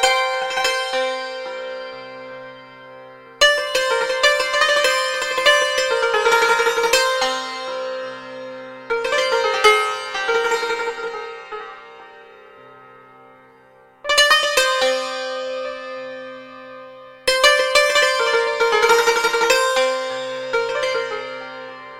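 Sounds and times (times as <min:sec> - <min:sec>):
santoor: 0:00.0 - 0:21.9.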